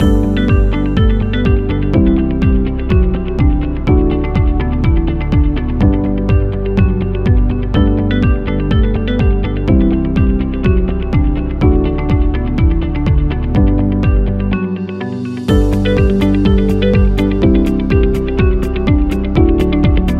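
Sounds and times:
happy music loop: 0:00.0 - 0:20.1.

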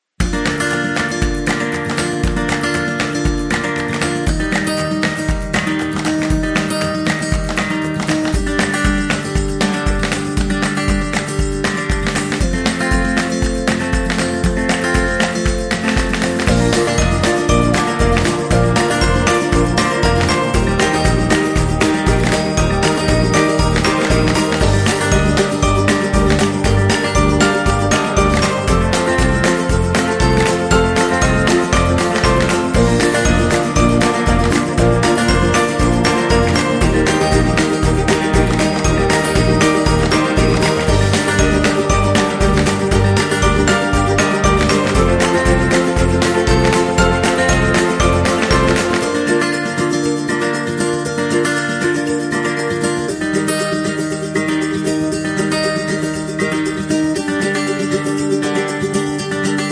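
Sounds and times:
birthday music: 0:00.2 - 0:59.7.

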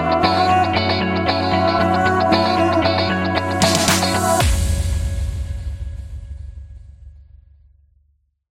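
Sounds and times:
dream pop corporate music: 0:00.0 - 0:06.0.

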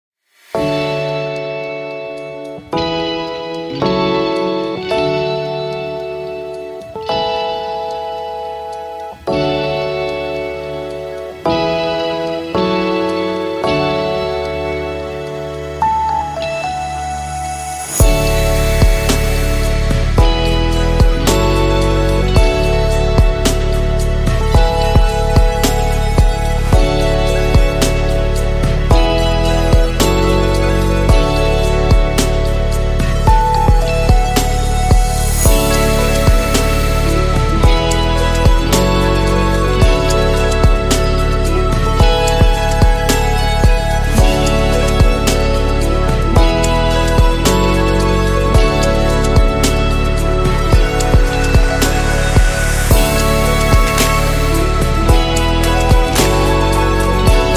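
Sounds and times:
deep emotional abstract ambient electronic music: 0:00.3 - 0:57.5.

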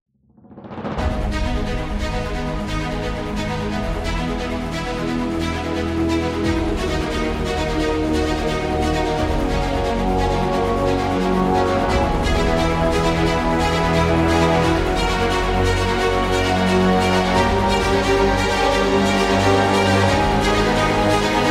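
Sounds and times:
epic dramatic music: 0:00.4 - 0:21.4.

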